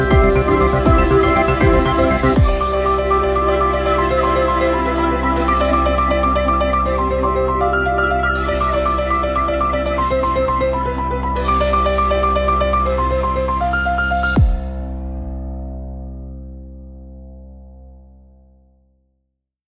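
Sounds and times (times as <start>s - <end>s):
arpeggios: 0.0s - 14.6s.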